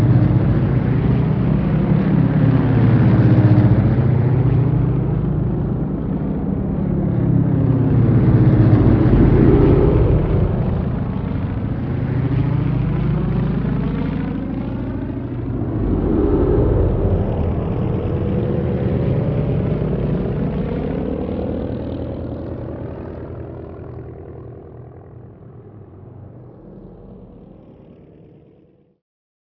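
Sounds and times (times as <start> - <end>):
ambient vehicles: 0.0 - 22.7.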